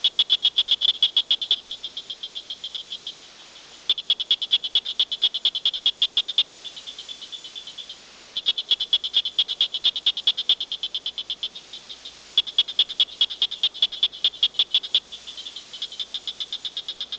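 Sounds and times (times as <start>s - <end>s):
tree frog of family Hylidae clicking: 0.0s - 3.0s, 3.9s - 6.5s, 8.4s - 11.7s, 12.4s - 17.1s.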